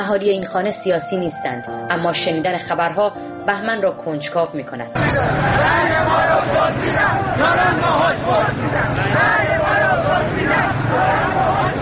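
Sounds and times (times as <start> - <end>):
speech: 0.0 - 11.8
protesters shouting in the streets of Iran: 5.0 - 11.8.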